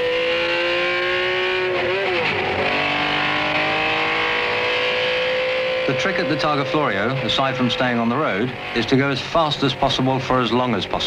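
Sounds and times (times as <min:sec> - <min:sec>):
car driving fast along the Targa Florio road circuit: 0:00.0 - 0:11.0
speech: 0:05.9 - 0:11.0.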